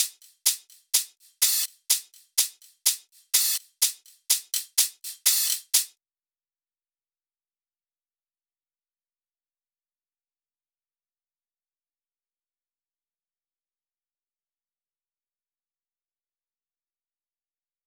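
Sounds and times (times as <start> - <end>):
125 BPM drum top loop: 0.0 - 5.9.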